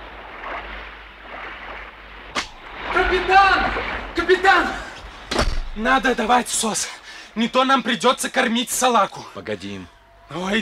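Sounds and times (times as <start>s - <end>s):
sharp splash: 0.0s - 6.1s
stormy sea roaring: 0.0s - 8.4s
surging waves: 0.0s - 8.6s
steady wind: 0.0s - 10.5s
speech: 3.1s - 4.8s, 5.8s - 10.5s.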